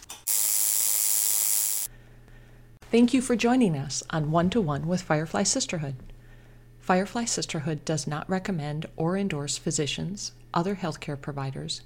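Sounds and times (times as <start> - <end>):
tattoo machine buzzing: 0.2 - 1.9
speech: 2.9 - 6.2, 6.9 - 11.8.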